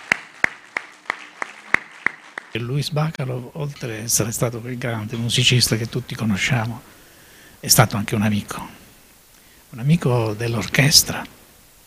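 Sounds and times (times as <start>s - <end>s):
performers on stage clapping for the audience after a concert: 0.0s - 3.2s
speech: 2.5s - 7.0s, 7.6s - 8.8s, 9.7s - 11.4s.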